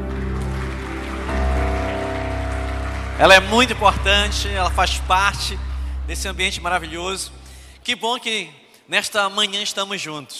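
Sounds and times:
audience applause: 0:00.0 - 0:06.2
speech: 0:03.2 - 0:10.3.

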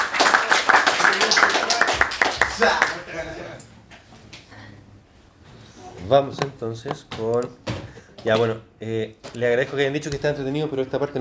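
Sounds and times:
audience applause: 0:00.0 - 0:03.3
speech: 0:02.6 - 0:02.9, 0:06.1 - 0:11.1.

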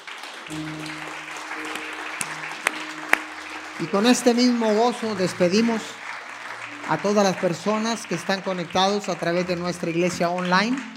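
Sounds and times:
audience applause: 0:00.0 - 0:10.9
speech: 0:00.5 - 0:01.1, 0:03.8 - 0:06.0, 0:06.9 - 0:10.9
low sustained keyboard tone: 0:00.5 - 0:08.8.

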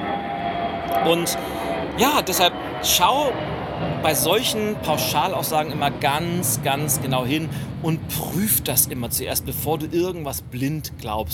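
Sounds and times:
airplane descending to land toward Tegel: 0:00.0 - 0:11.0
speech: 0:01.0 - 0:11.3.

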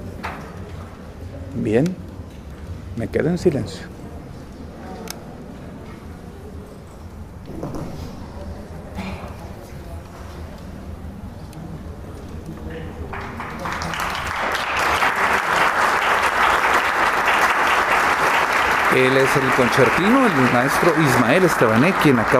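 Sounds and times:
speech: 0:01.6 - 0:02.0, 0:03.0 - 0:03.9, 0:19.0 - 0:22.3
audience applause: 0:13.1 - 0:22.3.

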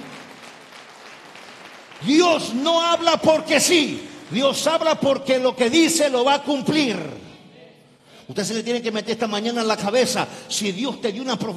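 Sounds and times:
audience applause: 0:00.0 - 0:04.6
speech: 0:02.0 - 0:07.2, 0:08.3 - 0:11.5.

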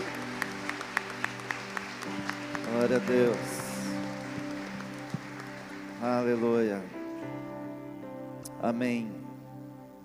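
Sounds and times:
audience applauding: 0:00.0 - 0:07.5
speech: 0:02.8 - 0:03.5, 0:06.0 - 0:07.0, 0:08.6 - 0:09.2.

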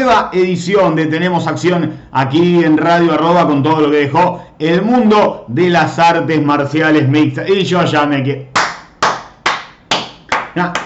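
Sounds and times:
speech: 0:00.0 - 0:08.5, 0:10.6 - 0:10.8
applause: 0:08.6 - 0:10.8.

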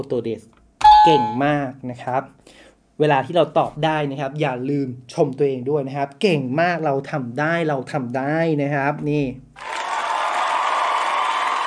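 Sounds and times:
speech: 0:00.0 - 0:09.7
applause sound effect: 0:09.6 - 0:11.6.

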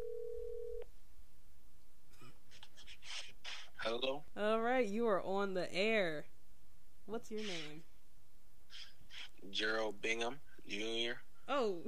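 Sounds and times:
steady telephone tone as a call is placed: 0:00.0 - 0:00.8
speech: 0:03.9 - 0:06.3, 0:07.1 - 0:07.9, 0:09.4 - 0:11.8.

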